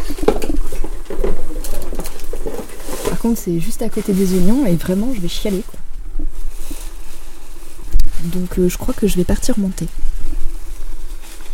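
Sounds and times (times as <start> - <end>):
hen's eggs boiling in a pot: 0.0 - 11.5
speech: 3.2 - 5.8, 8.2 - 10.1.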